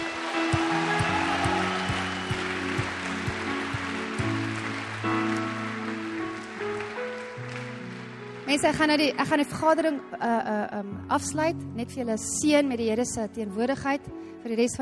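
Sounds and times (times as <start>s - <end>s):
audience applauding: 0.0s - 8.9s
speech: 8.6s - 14.7s.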